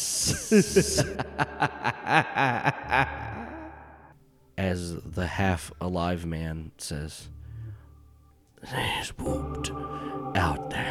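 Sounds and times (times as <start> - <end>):
breathy hiss turning into a laugh: 0.0 - 3.7
speech: 0.2 - 3.4, 4.6 - 7.4, 8.6 - 10.9.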